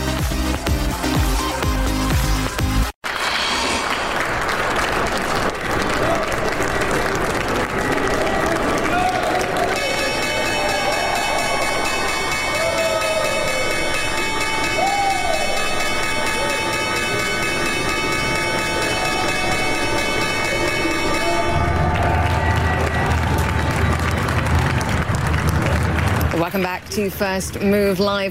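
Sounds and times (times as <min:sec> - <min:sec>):
cheering: 0:00.1 - 0:26.3
applause on a stock exchange trading floor: 0:00.2 - 0:11.9, 0:21.4 - 0:26.9
loud electric opening bell ringing: 0:09.7 - 0:23.2
speech: 0:27.1 - 0:28.2.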